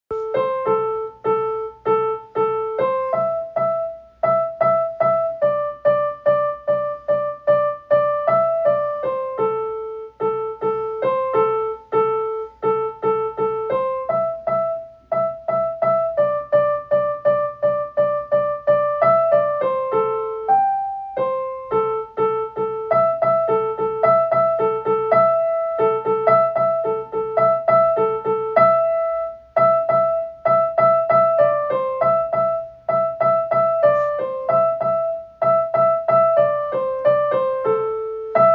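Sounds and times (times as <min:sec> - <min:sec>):
piano: 0:00.0 - 0:38.5.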